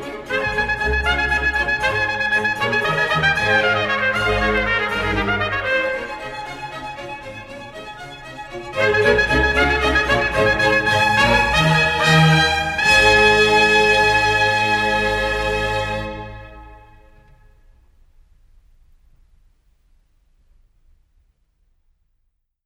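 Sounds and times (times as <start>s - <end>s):
trumpet concerto in A flat: 0.0s - 17.8s.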